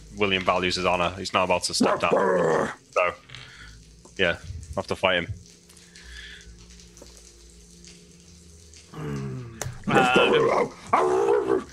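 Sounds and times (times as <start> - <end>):
speech: 0.2 - 3.2, 4.2 - 5.4
person imitating snarling dog-like gnoll barks: 1.8 - 2.8, 9.4 - 11.7.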